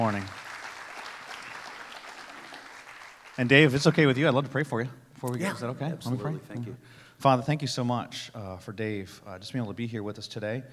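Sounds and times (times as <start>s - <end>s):
speech: 0.0s - 0.4s, 3.4s - 10.7s
church congregation applauding to welcome a guest preacher: 0.0s - 4.2s.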